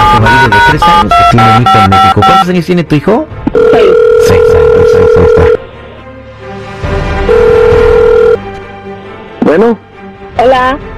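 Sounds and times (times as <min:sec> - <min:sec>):
phone ringing tone on a call line: 0:00.0 - 0:02.5, 0:03.5 - 0:05.6, 0:07.3 - 0:08.4
speech: 0:00.7 - 0:05.6, 0:09.5 - 0:10.9.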